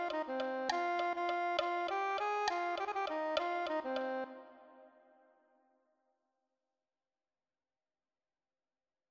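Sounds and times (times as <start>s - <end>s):
soprano saxophone: 0.0s - 5.2s.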